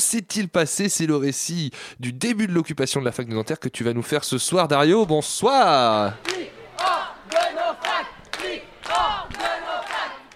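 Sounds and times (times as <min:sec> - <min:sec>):
speech: 0:00.1 - 0:06.9
protest crowd chanting slogan: 0:05.5 - 0:10.3.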